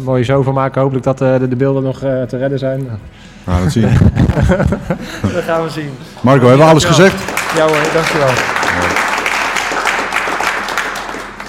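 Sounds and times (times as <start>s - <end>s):
speech: 0.0s - 9.1s
laughter: 3.5s - 9.2s
applause: 6.2s - 11.4s.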